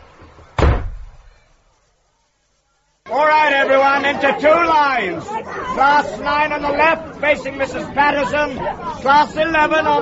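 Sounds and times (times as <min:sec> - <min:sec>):
toilet door shut from the inside: 0:00.6 - 0:01.3
speech: 0:03.1 - 0:09.9.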